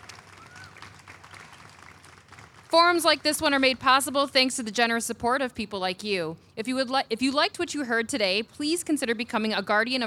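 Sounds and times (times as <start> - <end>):
crowd applauding: 0.0 - 3.3
speech: 2.7 - 10.0.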